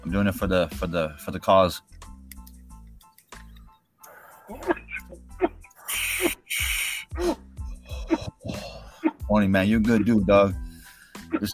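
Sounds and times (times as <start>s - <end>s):
speech: 0.1s - 2.0s, 9.3s - 10.6s
gasps and wheezy breaths: 4.0s - 4.7s, 5.7s - 8.0s, 10.6s - 11.3s
person coughing after a bong hit: 4.5s - 6.4s, 7.2s - 9.2s.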